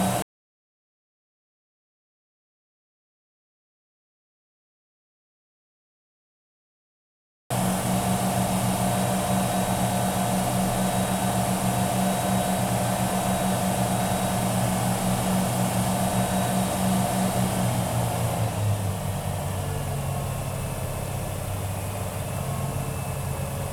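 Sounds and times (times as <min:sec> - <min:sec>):
Wellcraft Scarab 34 boat engine starting: 0:07.5 - 0:23.7.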